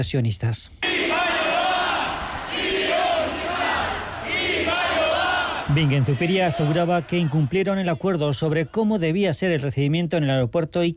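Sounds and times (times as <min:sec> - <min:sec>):
speech: 0:00.0 - 0:01.3, 0:05.7 - 0:10.9
protest crowd shouting slogans in unison: 0:00.8 - 0:08.5.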